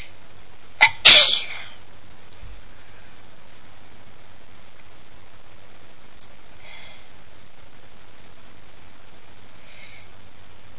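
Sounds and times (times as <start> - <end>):
woman sneezing loudly like a hurricane: 0.8 - 1.8.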